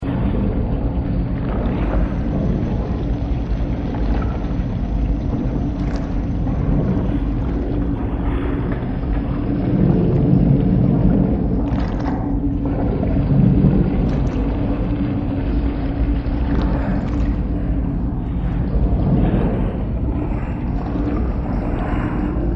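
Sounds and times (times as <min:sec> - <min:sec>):
ambience: 0:00.0 - 0:22.5.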